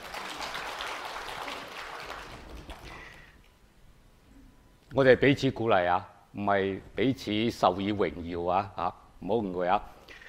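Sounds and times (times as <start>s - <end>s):
audience applause: 0.0s - 3.3s
speech: 5.0s - 10.0s.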